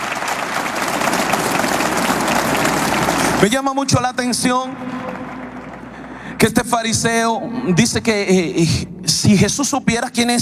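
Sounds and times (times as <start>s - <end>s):
crowd applause: 0.0s - 6.6s
speech: 3.4s - 5.2s, 6.4s - 10.4s.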